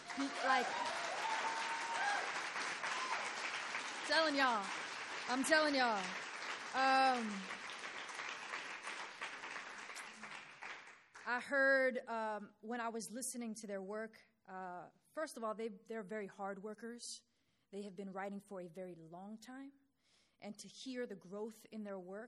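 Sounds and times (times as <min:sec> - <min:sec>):
voices calling out and cheering: 0:00.0 - 0:07.6
audience applause: 0:00.0 - 0:11.2
speech: 0:00.2 - 0:01.0, 0:04.1 - 0:07.6, 0:11.3 - 0:19.8, 0:20.4 - 0:22.2.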